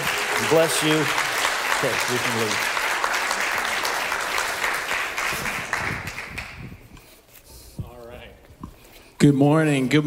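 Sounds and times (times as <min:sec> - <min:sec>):
audience applauding: 0:00.0 - 0:06.8
speech: 0:00.5 - 0:02.8, 0:09.2 - 0:10.0.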